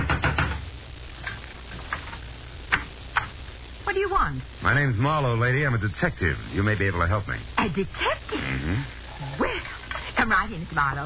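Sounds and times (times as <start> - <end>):
loud knocking on a door: 0.0 - 0.6
speech: 3.9 - 9.5, 10.3 - 11.0.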